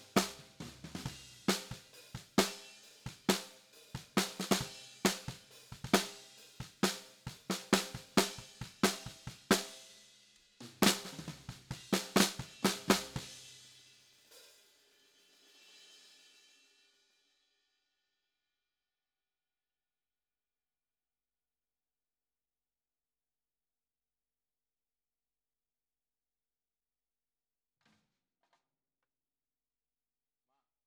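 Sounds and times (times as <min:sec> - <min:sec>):
snare drum: 0:00.0 - 0:09.9, 0:10.6 - 0:13.8.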